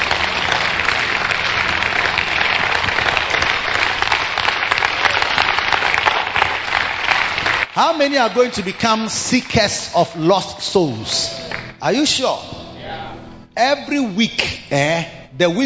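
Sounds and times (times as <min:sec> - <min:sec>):
audience clapping hands: 0:00.0 - 0:10.3, 0:11.2 - 0:11.8
speech: 0:07.8 - 0:12.5, 0:13.6 - 0:15.6.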